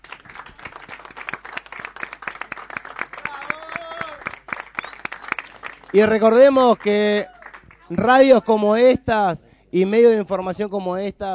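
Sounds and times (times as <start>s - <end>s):
audience applause: 0.0s - 7.9s
speech: 5.9s - 7.3s, 7.9s - 11.3s.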